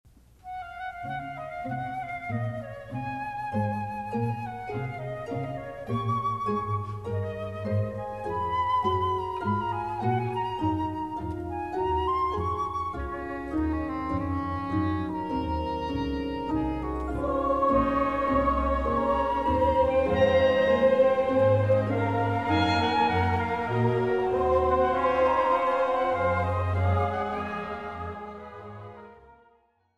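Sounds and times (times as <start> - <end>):
chorale variations: 0.3 - 29.8.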